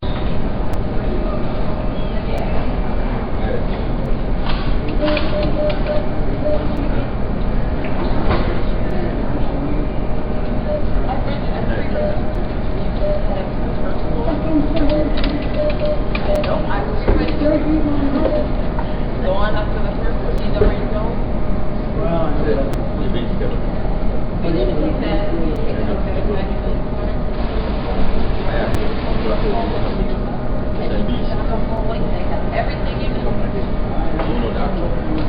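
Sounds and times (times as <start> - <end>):
hospital ambience: 0.0 - 35.2.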